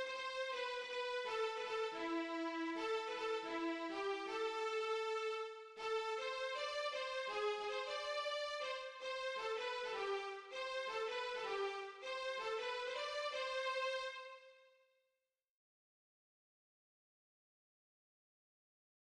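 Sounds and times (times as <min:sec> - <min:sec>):
music medley: 0:00.0 - 0:14.2.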